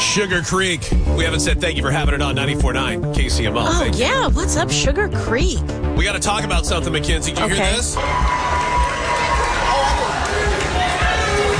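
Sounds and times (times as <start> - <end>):
speech: 0.2 - 8.6
large crowd yelling a player's name: 7.5 - 11.5.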